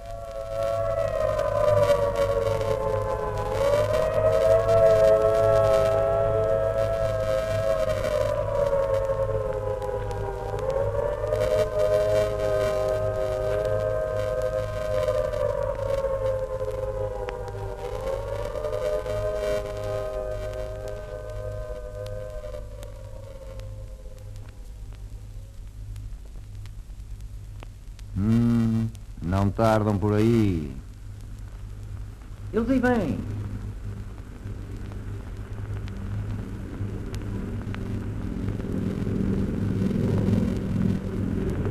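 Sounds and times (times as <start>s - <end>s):
civil defense siren wailing in a simulated air-raid blitz: 0.0s - 25.3s, 35.6s - 41.6s
steady low drone: 0.0s - 25.6s, 28.2s - 30.8s, 32.4s - 41.6s
speech: 29.6s - 30.8s, 32.6s - 33.3s.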